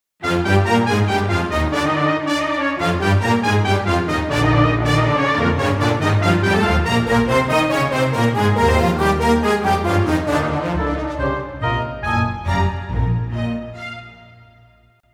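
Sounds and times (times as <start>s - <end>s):
fugue: 0.2s - 14.8s.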